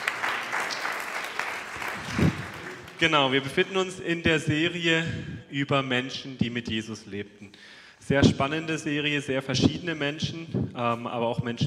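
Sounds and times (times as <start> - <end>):
audience clapping: 0.0 - 3.8
speech: 3.0 - 11.6.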